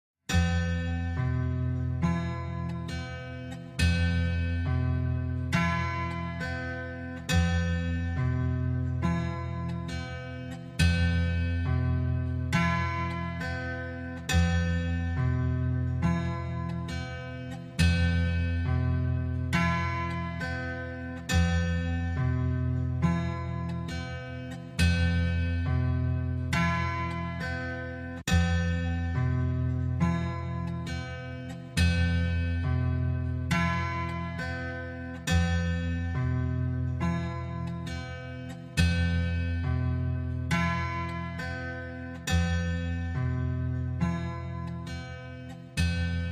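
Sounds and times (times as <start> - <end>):
dulcimer: 0.3 - 46.2.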